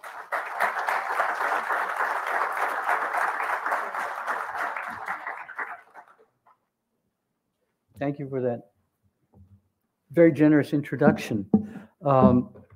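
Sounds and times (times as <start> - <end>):
audience applause at the VMHC welcoming a lecturer: 0.0 - 6.4
speech: 8.0 - 8.7, 10.2 - 12.6.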